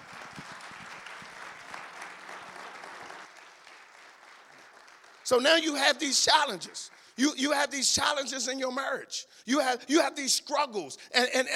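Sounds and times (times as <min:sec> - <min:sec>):
audience applause: 0:00.0 - 0:07.2
speech: 0:05.3 - 0:11.5.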